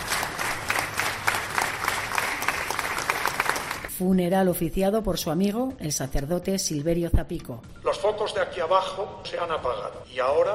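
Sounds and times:
funeral crowd applause ovation: 0.0s - 3.9s
speech: 4.0s - 10.5s.

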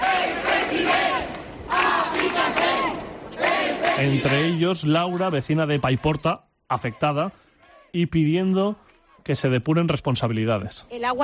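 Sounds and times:
large crowd of protesters shouting: 0.0s - 8.0s
speech: 4.0s - 11.2s.

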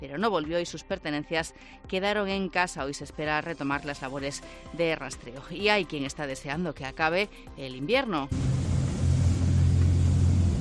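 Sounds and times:
speech: 0.0s - 8.6s
pilot boat engine bouncing over waves: 8.3s - 10.6s.

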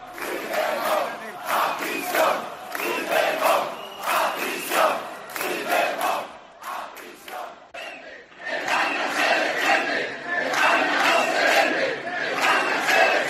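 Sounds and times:
protest crowd in Seville chanting against the amnesty and Pedro Sánchez: 0.0s - 13.2s.

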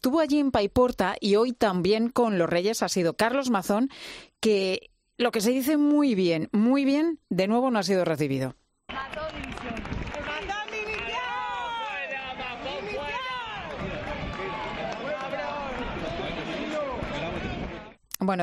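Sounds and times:
speech: 0.0s - 8.6s, 18.2s - 18.4s
crowd shouting calls for resignation: 8.9s - 18.0s.

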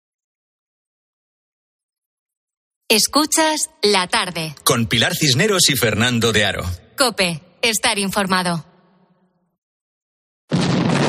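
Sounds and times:
speech: 2.9s - 8.7s
cannon firing 30-kilo shot from HMS Victory at the Battle of Trafalgar: 10.5s - 11.0s.

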